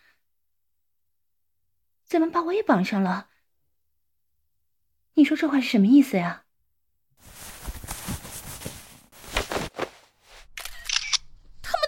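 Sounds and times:
speech: 2.1 - 3.3, 5.2 - 6.4
camera shutter clicks while taking photos: 10.6 - 11.2.

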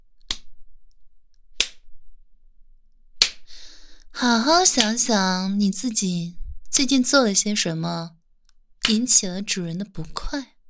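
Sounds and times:
sharp loud face slaps: 1.6 - 1.9, 3.2 - 3.5
speech: 4.2 - 8.2, 8.8 - 10.5.

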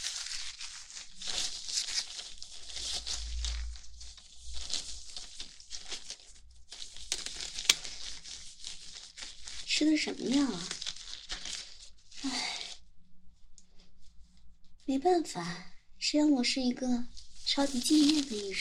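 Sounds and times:
gloves rustling while pulled out of a drawer: 0.0 - 12.8, 17.0 - 18.6
speech: 9.8 - 10.8, 14.9 - 18.6.

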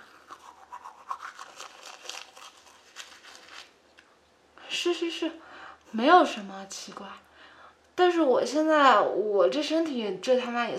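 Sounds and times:
toothbrush scrubbing teeth: 0.0 - 3.7
speech: 4.8 - 7.3, 8.0 - 10.7.

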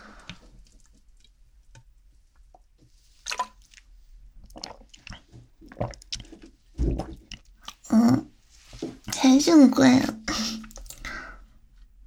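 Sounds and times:
wet mouth sounds and gulps while drinking a strange-tasting drink: 3.2 - 9.2, 10.2 - 11.1
swallowing: 4.4 - 8.4, 10.0 - 11.4
speech: 9.2 - 10.2.

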